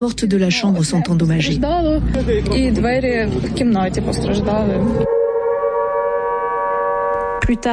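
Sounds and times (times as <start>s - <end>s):
speech: 0.0s - 5.2s, 7.5s - 7.7s
air raid sirens wailing across Kiev: 3.0s - 7.7s.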